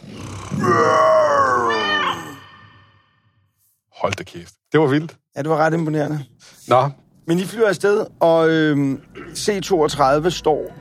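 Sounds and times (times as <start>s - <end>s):
person imitating a lion's roar by voicing into a cola bottle: 0.0s - 1.8s
speech: 4.3s - 10.7s.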